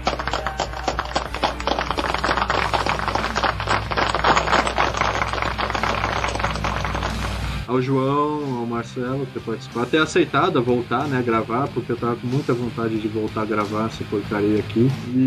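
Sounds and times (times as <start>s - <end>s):
applause: 0.0s - 7.6s
speech: 7.7s - 15.2s.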